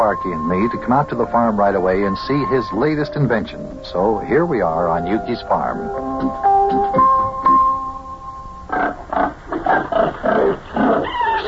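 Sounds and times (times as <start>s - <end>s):
speech: 0.0s - 7.2s
pigs grunting and squealing in a farm pen: 8.7s - 11.4s.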